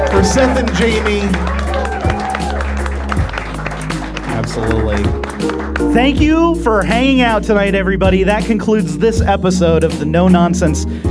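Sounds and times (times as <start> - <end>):
audience applause: 0.0 - 6.4
speech: 0.2 - 1.6, 4.4 - 11.0.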